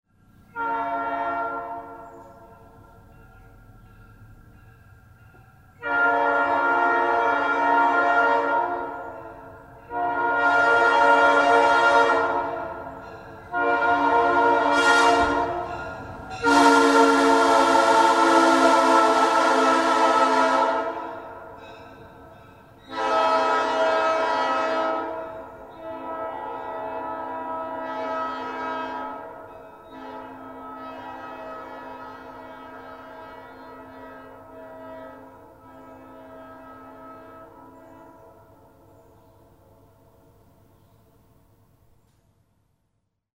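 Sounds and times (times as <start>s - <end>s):
horn: 0.5s - 2.1s, 5.8s - 21.4s, 22.9s - 38.4s.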